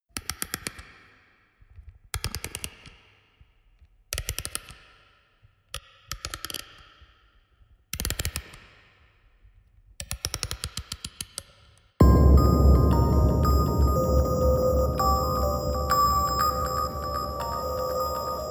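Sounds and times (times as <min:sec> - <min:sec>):
harsh noise music box: 0:12.0 - 0:18.4.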